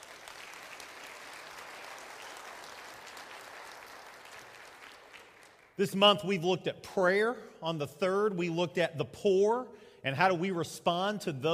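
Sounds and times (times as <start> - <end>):
audience applauding: 0.0 - 5.8
speech: 5.8 - 11.5.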